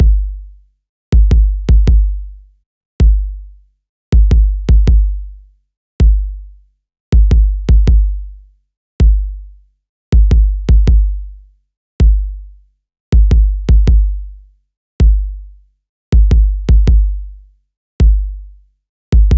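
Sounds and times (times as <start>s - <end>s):
kick drum: 0.0s - 0.4s, 1.2s - 2.3s, 3.0s - 3.4s, 4.2s - 5.3s, 6.0s - 6.4s, 7.2s - 8.3s, 9.0s - 9.4s, 10.2s - 11.3s, 12.0s - 12.4s, 13.2s - 14.3s, 15.0s - 15.4s, 16.2s - 17.3s, 18.0s - 18.4s, 19.2s - 19.3s.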